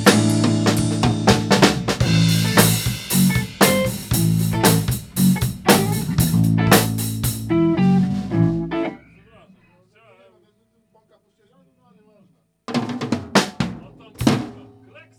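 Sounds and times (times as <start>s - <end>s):
funk band rehearsing: 0.0s - 9.7s, 12.7s - 15.1s.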